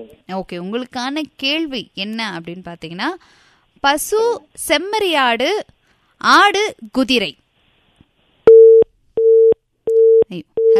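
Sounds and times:
speech: 0:00.0 - 0:07.4, 0:10.3 - 0:10.7
phone busy tone beeps after a dropped call: 0:08.5 - 0:10.7.

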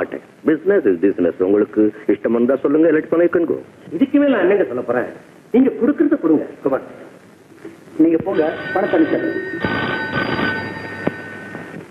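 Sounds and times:
speech: 0:00.0 - 0:07.0, 0:08.0 - 0:10.1
telephone ringing: 0:08.2 - 0:11.8.

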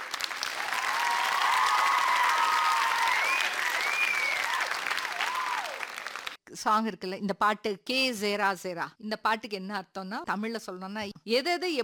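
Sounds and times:
loud applause: 0:00.0 - 0:06.4
speech: 0:06.6 - 0:11.8.

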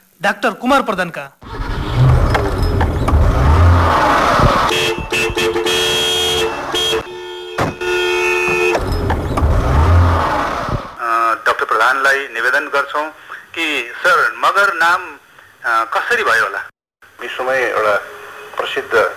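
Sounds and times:
speech: 0:00.2 - 0:01.5, 0:11.8 - 0:19.1
car engine revving as the vehicle drives off: 0:01.4 - 0:11.0.

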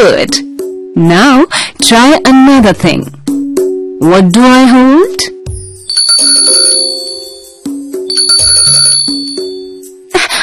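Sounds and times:
speech: 0:00.0 - 0:03.2, 0:04.0 - 0:05.4
small bell being shaken: 0:05.8 - 0:07.5, 0:08.1 - 0:09.8.

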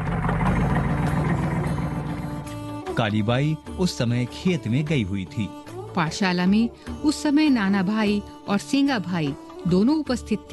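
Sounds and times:
truck engine idling after stopping: 0:00.0 - 0:03.7
speech: 0:03.0 - 0:10.5.

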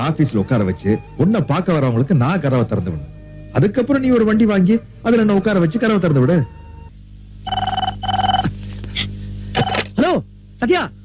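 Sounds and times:
speech: 0:00.0 - 0:06.6, 0:10.6 - 0:11.0
telephone ringing: 0:07.4 - 0:08.5, 0:09.6 - 0:09.9.

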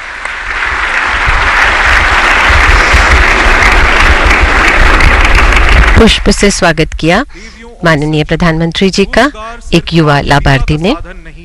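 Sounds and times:
audience applauding at a government ceremony honoring the prime minister: 0:00.0 - 0:06.6
speech: 0:06.0 - 0:11.4.

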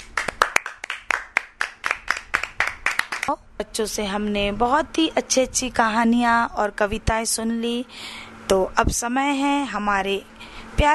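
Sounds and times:
audience clapping hands: 0:00.0 - 0:03.3
speech: 0:03.3 - 0:10.9.

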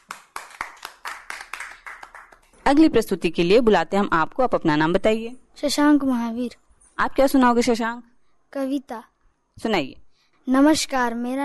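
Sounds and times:
audience clapping in unison: 0:00.0 - 0:02.6
speech: 0:02.7 - 0:11.4.

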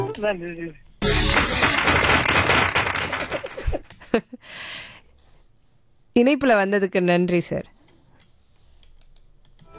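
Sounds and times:
speech: 0:00.2 - 0:00.9, 0:03.2 - 0:04.9, 0:06.2 - 0:07.7
applause: 0:01.3 - 0:03.7.

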